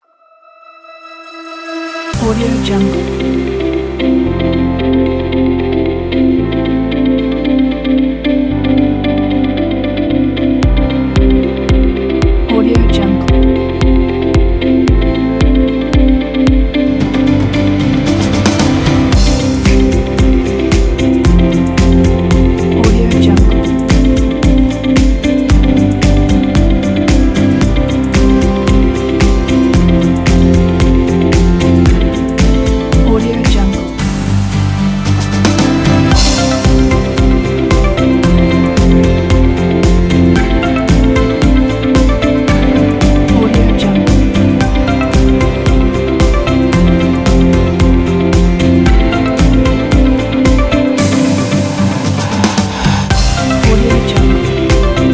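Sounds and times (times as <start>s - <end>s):
inspiring uplifting motivational upbeat corporate music: 2.2s - 55.1s.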